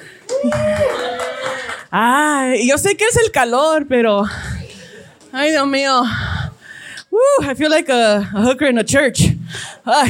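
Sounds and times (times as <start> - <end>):
audience applause: 0.2 - 1.9
speech: 0.4 - 0.9, 2.0 - 4.5, 5.3 - 6.3, 7.4 - 10.0.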